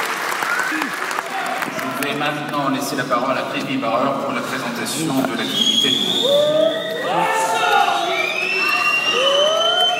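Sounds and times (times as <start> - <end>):
murmur of voices: 0.6 - 9.9
speech: 2.1 - 7.4
crowd whistling in disapproval: 5.4 - 9.9.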